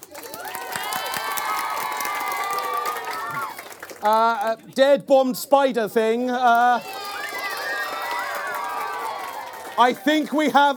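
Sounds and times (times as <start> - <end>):
scattered clapping: 0.0 - 5.0, 6.4 - 10.7
audience cheering and shouting: 0.2 - 3.7, 6.5 - 10.7
speech: 4.0 - 7.0, 9.8 - 10.7.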